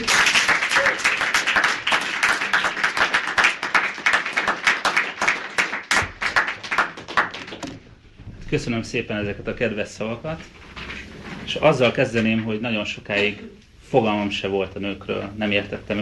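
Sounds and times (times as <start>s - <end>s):
audience applause welcoming speaker: 0.0s - 7.8s
speech: 8.5s - 10.6s, 11.5s - 16.0s.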